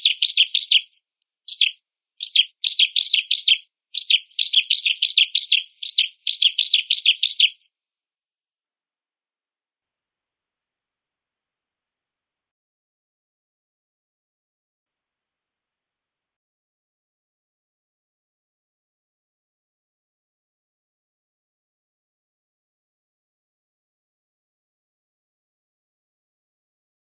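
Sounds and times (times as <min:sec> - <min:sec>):
female Bar-winged prinia buzzy chirps and rasping notes: 0:00.0 - 0:00.9, 0:01.5 - 0:07.6.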